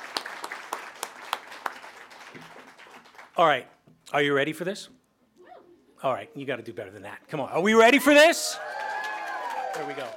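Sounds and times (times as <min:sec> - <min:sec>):
round of applause: 0:00.0 - 0:03.4, 0:08.1 - 0:10.1
speech: 0:03.4 - 0:05.0, 0:06.0 - 0:08.8, 0:09.8 - 0:10.1.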